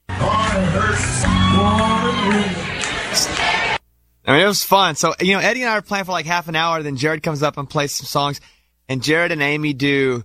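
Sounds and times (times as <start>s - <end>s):
bar crowd cheering and whooping at a live performance: 0.0s - 3.8s
speech: 0.6s - 3.8s, 4.5s - 10.2s.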